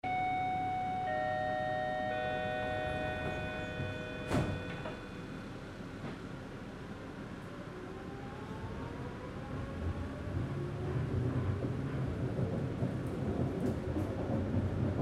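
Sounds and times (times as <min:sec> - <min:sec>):
subway train riding: 0:00.0 - 0:15.0
subway chime dings: 0:00.1 - 0:05.4.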